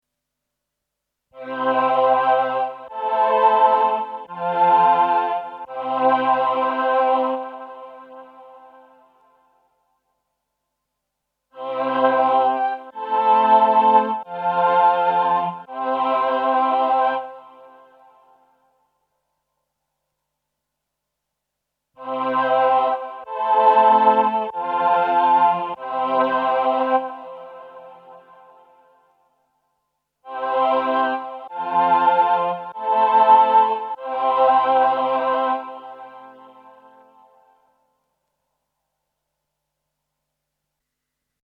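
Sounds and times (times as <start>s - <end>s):
VP330 VC340 choir pad with attack and release: 1.4s - 9.6s, 11.6s - 18.6s, 22.0s - 29.2s, 30.2s - 37.8s.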